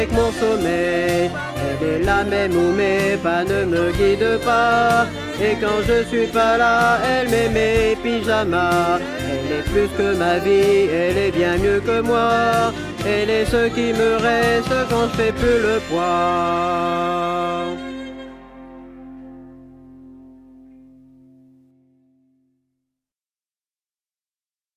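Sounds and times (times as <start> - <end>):
tenor singing: 0.0 - 19.4.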